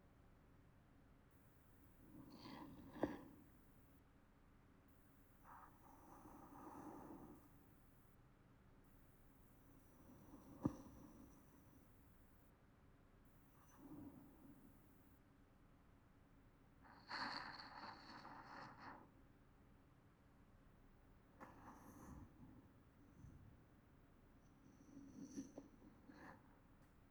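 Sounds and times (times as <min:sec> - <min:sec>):
sleeping breathing: 0:01.8 - 0:03.9, 0:05.4 - 0:08.1, 0:09.5 - 0:12.4, 0:13.5 - 0:15.1, 0:16.9 - 0:19.1, 0:21.4 - 0:23.7, 0:24.5 - 0:27.0.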